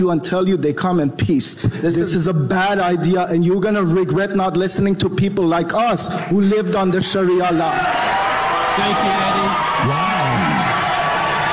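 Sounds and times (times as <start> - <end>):
speech: 0.0 - 10.4
crowd responding to speech: 7.6 - 11.5.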